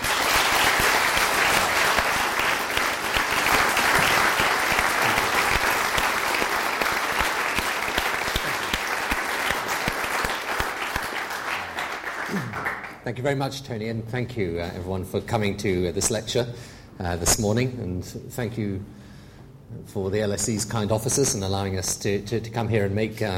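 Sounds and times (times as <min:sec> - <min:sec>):
audience applause welcoming Prime Minister Tony Blair at the LSE: 0:00.0 - 0:13.0
speech: 0:13.1 - 0:19.0, 0:19.7 - 0:23.3.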